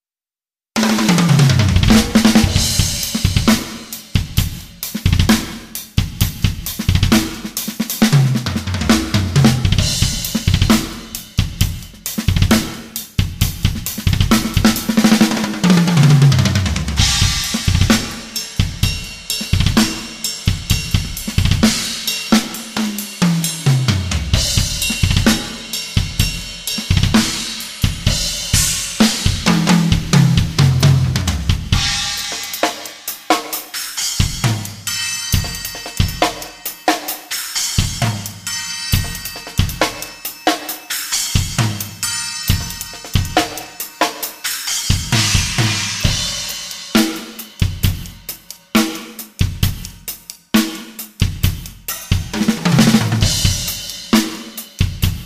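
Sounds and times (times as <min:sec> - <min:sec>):
drums: 0:00.8 - 0:55.2.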